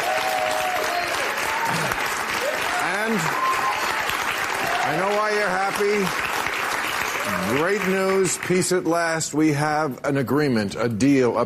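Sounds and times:
faint whistles and cheers: 0.0 - 1.7, 2.4 - 5.2
large crowd applause: 0.0 - 8.9
speech: 4.9 - 6.2, 7.3 - 11.4.

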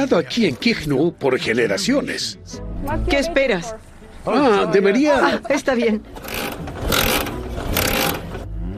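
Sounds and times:
speech: 0.0 - 6.3
old Soviet-era motorcycle engine cranking and starting: 6.0 - 8.6.

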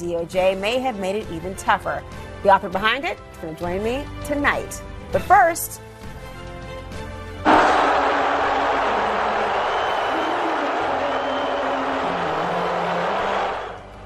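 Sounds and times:
speech: 0.0 - 5.9
arena crowd booing Trump at Game 3 of the NBA Finals: 7.5 - 14.0.

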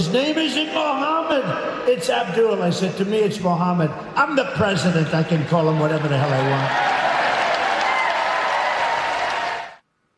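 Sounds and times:
speech: 0.0 - 7.1
rally crowd applause: 5.7 - 9.8.

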